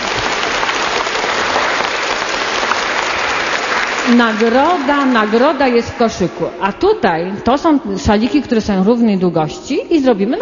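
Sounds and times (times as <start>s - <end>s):
applause in a church: 0.0s - 6.3s
speech: 4.1s - 10.4s.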